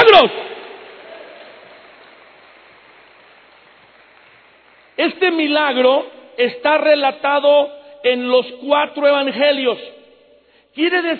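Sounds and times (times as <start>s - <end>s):
audience applauding: 0.0s - 5.2s
speech: 0.2s - 0.5s, 5.2s - 10.0s, 10.8s - 11.1s.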